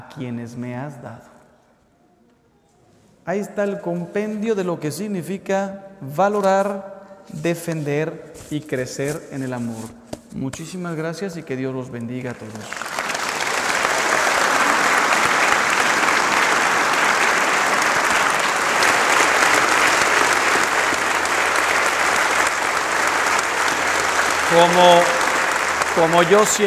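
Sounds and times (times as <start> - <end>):
speech: 0.1 - 1.4, 3.2 - 12.8, 24.5 - 25.2, 26.0 - 26.6
audience applause: 12.4 - 26.6.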